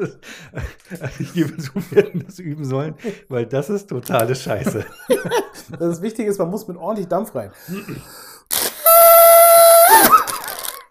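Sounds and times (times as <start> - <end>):
laughter: 0.0 - 2.3, 4.5 - 5.8
speech: 0.0 - 8.3
trunk-shaped party horn blower tooting: 8.5 - 10.8.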